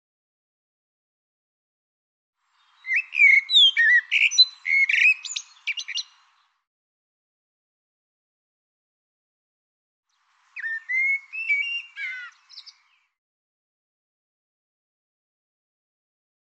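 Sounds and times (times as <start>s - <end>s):
bird song: 2.4s - 6.7s, 10.1s - 13.2s.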